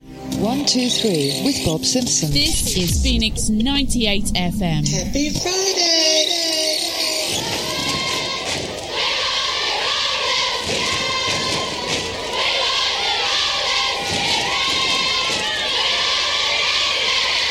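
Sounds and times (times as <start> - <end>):
speech: 0.4 - 6.4
concert crowd screaming in anticipation: 6.0 - 17.5.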